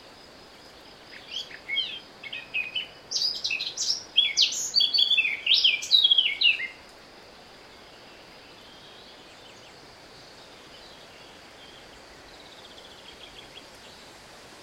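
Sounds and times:
Eurasian blackcap Sylvia atricapilla song: 0:01.1 - 0:06.8.

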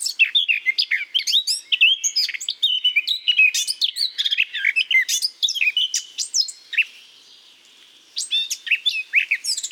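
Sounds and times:
Eurasian blackcap Sylvia atricapilla singing a long dense warble: 0:00.0 - 0:07.0, 0:08.2 - 0:09.7.

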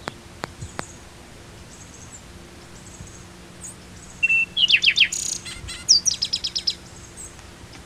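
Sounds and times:
bird whistles and chirps: 0:02.9 - 0:07.3.

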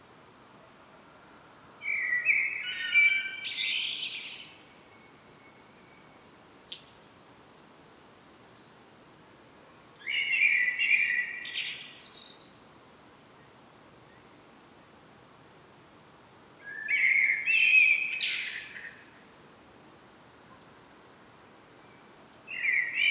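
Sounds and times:
common blackbird singing: 0:01.8 - 0:04.7, 0:10.0 - 0:12.6, 0:16.6 - 0:19.1, 0:21.9 - 0:23.0
faint click: 0:06.7 - 0:07.0, 0:09.6 - 0:10.1, 0:20.5 - 0:20.8.

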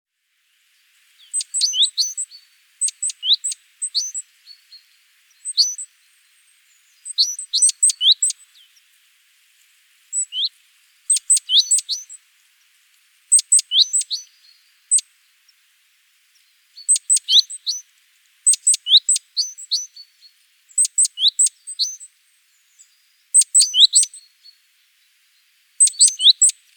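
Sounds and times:
great tit calling: 0:01.3 - 0:04.2, 0:05.4 - 0:05.9, 0:07.0 - 0:08.4, 0:10.1 - 0:10.5, 0:11.1 - 0:12.2, 0:13.3 - 0:14.3, 0:16.8 - 0:17.8, 0:18.5 - 0:20.0, 0:20.7 - 0:22.1, 0:23.4 - 0:24.2, 0:25.8 - 0:26.6.

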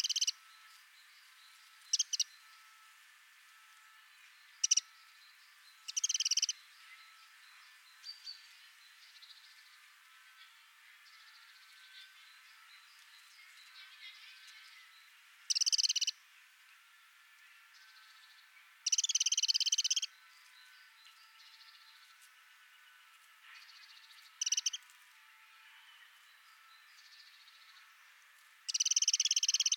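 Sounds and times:
faint warbling from another bird: 0:00.0 - 0:00.3, 0:04.6 - 0:04.8, 0:05.9 - 0:06.5, 0:15.5 - 0:16.1, 0:18.8 - 0:20.1, 0:24.4 - 0:24.8, 0:28.7 - 0:29.7
Eurasian wren rattle call of dry ticks: 0:00.0 - 0:00.4, 0:01.8 - 0:02.4, 0:04.5 - 0:04.9, 0:05.8 - 0:06.6, 0:15.4 - 0:16.2, 0:18.8 - 0:20.2, 0:23.6 - 0:24.9, 0:28.7 - 0:29.7.

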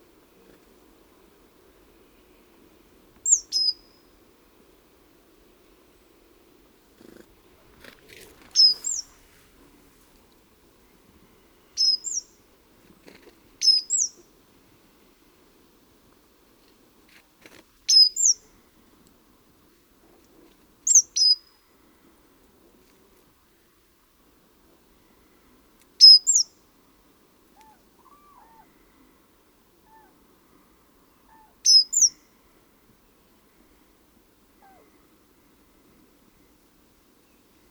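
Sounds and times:
faint background hiss: 0:00.0 - 0:37.6
great tit calls: 0:03.2 - 0:04.0, 0:08.4 - 0:09.2, 0:11.8 - 0:14.3, 0:26.0 - 0:26.6, 0:31.3 - 0:32.3
light rustling: 0:07.0 - 0:10.4.

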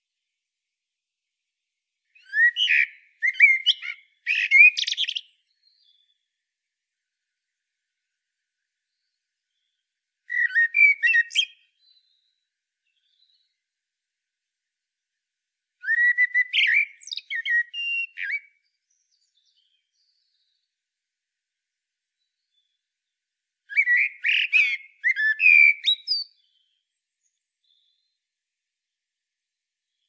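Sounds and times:
common blackbird singing: 0:02.2 - 0:06.2, 0:10.3 - 0:13.6, 0:15.8 - 0:20.6, 0:23.7 - 0:28.2.

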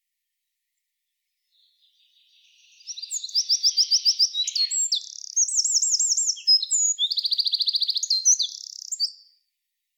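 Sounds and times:
Eurasian wren singing trill: 0:02.4 - 0:09.1.

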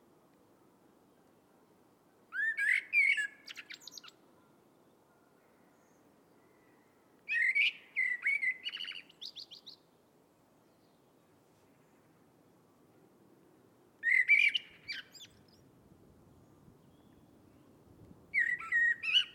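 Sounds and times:
background hiss: 0:00.0 - 0:19.3
Eurasian blackbird song: 0:02.3 - 0:10.0, 0:10.6 - 0:12.1, 0:14.0 - 0:15.7, 0:16.4 - 0:19.3.

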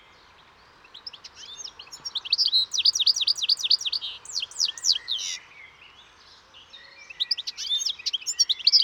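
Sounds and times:
European goldfinch twittering: 0:01.2 - 0:05.3, 0:07.3 - 0:08.8.

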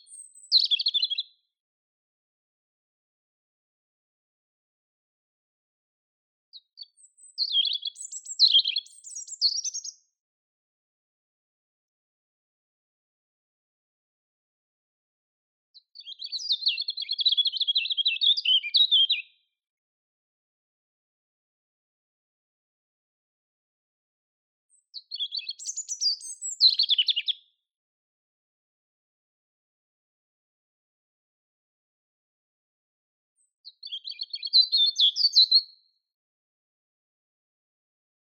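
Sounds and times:
European robin singing: 0:00.0 - 0:01.3, 0:06.6 - 0:10.1, 0:15.8 - 0:19.4, 0:24.7 - 0:27.5, 0:33.4 - 0:35.7.

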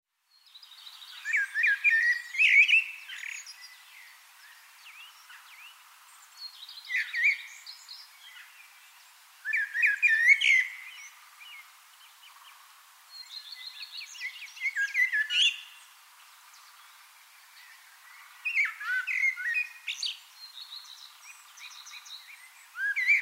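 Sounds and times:
Common blackbird singing: 0:00.3 - 0:08.6, 0:09.4 - 0:11.6, 0:13.1 - 0:15.9, 0:17.5 - 0:23.2.

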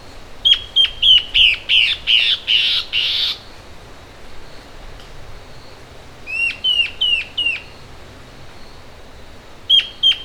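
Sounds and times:
bird call series: 0:00.4 - 0:03.5, 0:05.6 - 0:07.9, 0:09.6 - 0:10.2.

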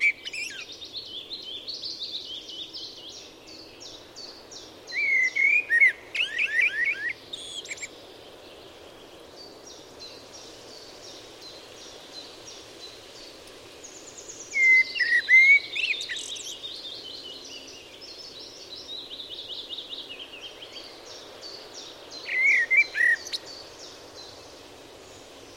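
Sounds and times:
Eurasian blackbird singing: 0:00.0 - 0:07.9, 0:14.2 - 0:23.7.

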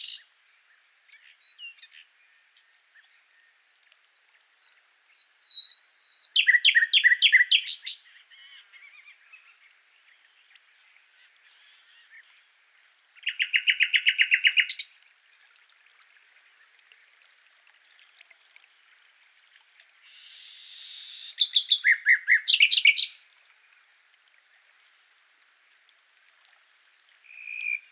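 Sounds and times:
common nightingale singing: 0:00.0 - 0:00.3, 0:03.0 - 0:09.6, 0:11.5 - 0:14.9, 0:20.1 - 0:23.2.

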